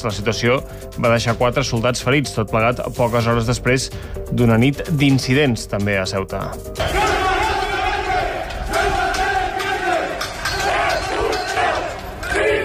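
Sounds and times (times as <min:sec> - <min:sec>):
speech: 0:00.0 - 0:07.1
protest crowd shouting: 0:06.8 - 0:12.6.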